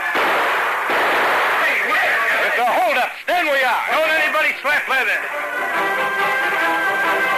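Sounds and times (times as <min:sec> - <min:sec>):
gunshots fired into the ceiling: 0:00.1 - 0:02.6
speech: 0:03.7 - 0:07.3.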